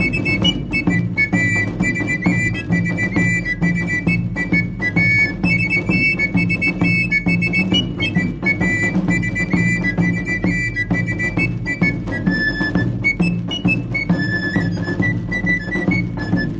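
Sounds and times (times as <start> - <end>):
galoubet and tambourin playing: 0.0 - 16.5.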